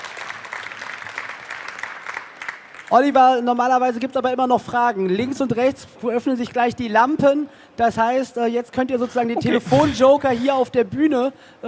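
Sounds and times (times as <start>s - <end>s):
congress audience applause: 0.0s - 3.0s
speech: 2.9s - 11.6s.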